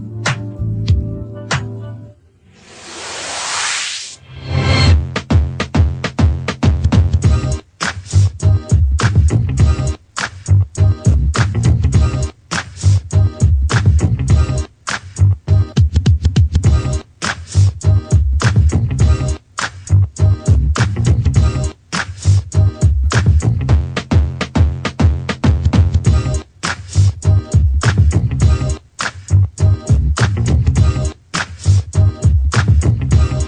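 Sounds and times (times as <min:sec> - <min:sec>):
instrumental music without vocals: 0:00.0 - 0:02.3, 0:04.6 - 0:19.4, 0:20.0 - 0:33.4.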